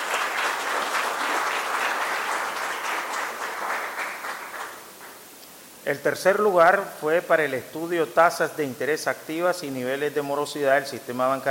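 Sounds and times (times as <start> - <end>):
audience applause: 0.0 - 5.2
speech: 5.9 - 11.4.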